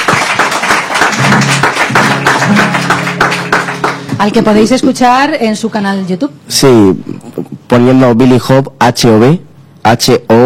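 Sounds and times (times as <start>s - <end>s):
applause: 0.0s - 4.6s
speech: 4.2s - 10.4s.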